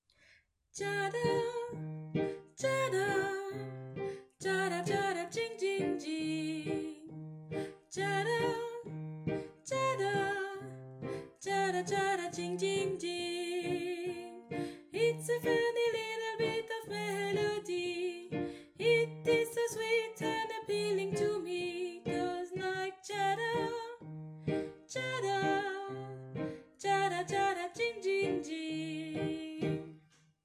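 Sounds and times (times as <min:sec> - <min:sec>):
soprano singing a refrain: 0:00.8 - 0:30.0.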